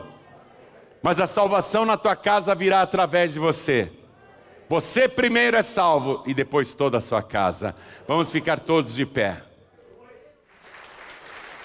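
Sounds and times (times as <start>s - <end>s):
speech: 1.0s - 4.0s, 4.7s - 9.5s
audience applauding: 10.5s - 11.6s.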